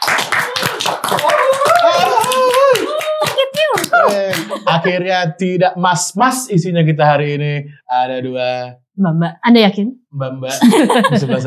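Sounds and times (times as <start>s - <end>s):
hands clapping: 0.0s - 4.9s
laughter: 0.5s - 5.3s, 10.5s - 11.4s
speech: 4.8s - 11.4s.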